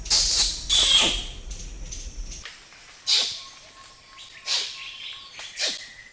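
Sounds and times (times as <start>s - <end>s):
orangutan kiss squeaks: 0.1s - 1.3s, 3.1s - 3.4s, 4.5s - 4.8s, 5.4s - 5.8s.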